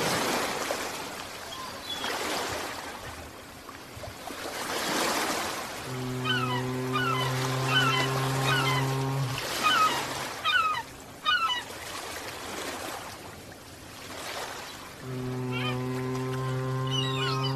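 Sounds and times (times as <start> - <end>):
ocean waves: 0.0 - 17.5
long low honking drone: 5.9 - 10.0, 15.0 - 17.5
short chirping bird calls: 5.9 - 11.7, 14.6 - 17.5.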